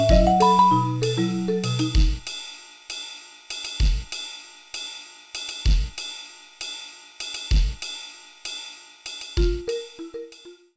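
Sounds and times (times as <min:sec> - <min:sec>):
vibraphone: 0:00.0 - 0:02.2, 0:09.4 - 0:10.6
ambient drums: 0:00.0 - 0:02.6, 0:03.5 - 0:06.3, 0:07.3 - 0:08.6, 0:09.2 - 0:10.1.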